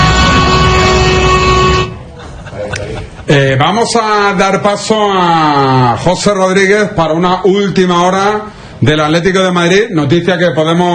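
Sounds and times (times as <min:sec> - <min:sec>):
long steady vehicle horn honk: 0:00.0 - 0:02.1
laughter: 0:02.0 - 0:03.6
speech: 0:03.3 - 0:10.9.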